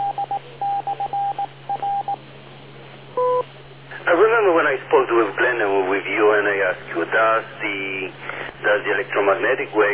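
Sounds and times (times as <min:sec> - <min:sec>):
electronic beep: 0:00.0 - 0:02.2, 0:03.2 - 0:03.4
speech: 0:04.1 - 0:09.9.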